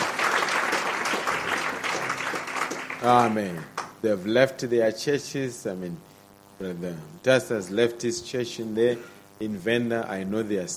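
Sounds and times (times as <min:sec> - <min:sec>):
audience applause: 0:00.0 - 0:03.9
speech: 0:03.0 - 0:10.7.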